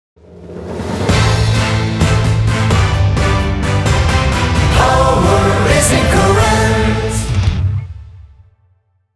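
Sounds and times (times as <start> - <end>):
English jingle: 1.1 - 7.3.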